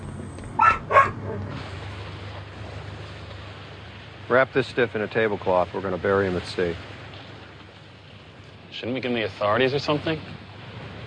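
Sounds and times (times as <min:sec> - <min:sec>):
dog barking: 0:00.6 - 0:01.4
speech: 0:04.3 - 0:07.0, 0:08.8 - 0:10.4.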